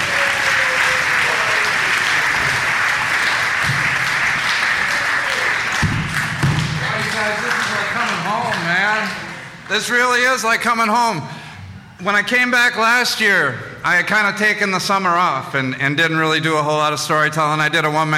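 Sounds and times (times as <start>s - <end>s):
whoops and cheering voices: 0.0s - 2.4s, 4.8s - 5.7s
audience applause: 0.0s - 9.5s
speech: 9.7s - 11.4s, 12.0s - 18.1s.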